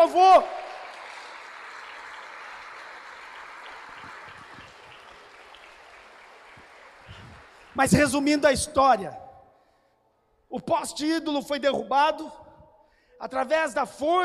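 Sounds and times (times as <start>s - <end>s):
speech: 0.0s - 0.6s, 7.8s - 9.2s, 10.5s - 12.4s, 13.2s - 14.2s
audience applause: 0.0s - 8.3s.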